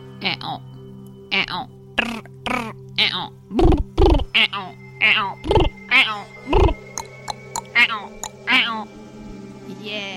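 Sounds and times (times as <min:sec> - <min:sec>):
people imitating frog croaking: 0:01.3 - 0:08.8.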